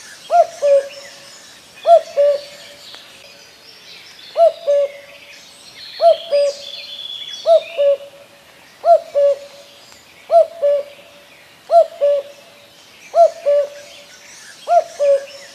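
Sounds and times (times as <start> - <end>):
common cuckoo calling: 0.0 - 3.0, 4.3 - 5.2, 6.0 - 8.2, 8.8 - 12.4, 13.1 - 15.5
other birds calling: 0.0 - 3.6, 4.3 - 15.5.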